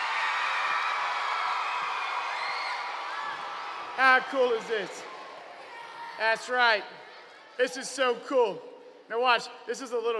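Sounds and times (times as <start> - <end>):
audience applause: 0.0 - 6.1
speech: 4.0 - 5.1, 6.2 - 7.0, 7.6 - 10.1.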